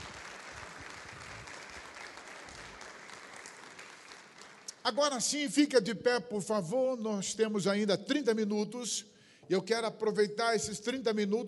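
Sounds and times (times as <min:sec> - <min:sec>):
congregation applauding in a church: 0:00.0 - 0:05.4
speech: 0:04.8 - 0:11.4.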